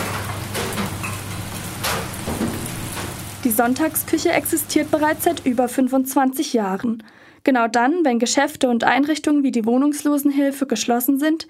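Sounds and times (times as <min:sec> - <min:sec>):
constant low mechanical hum: 0:00.0 - 0:05.8
dumplings sizzling in large pans: 0:00.0 - 0:06.0
speech: 0:03.4 - 0:11.4.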